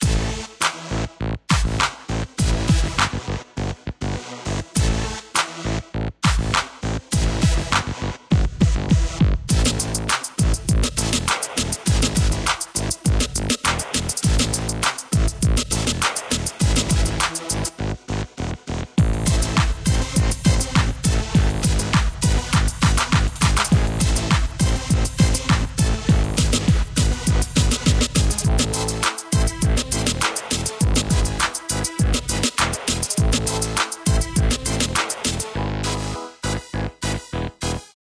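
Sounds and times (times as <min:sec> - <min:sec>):
dub music: 0:00.0 - 0:00.4, 0:01.4 - 0:18.4, 0:19.0 - 0:38.0.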